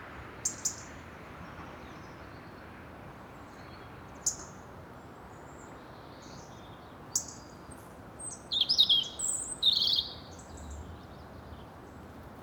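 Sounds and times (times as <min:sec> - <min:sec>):
European robin singing: 0:00.5 - 0:00.9, 0:05.6 - 0:07.6, 0:08.2 - 0:11.7.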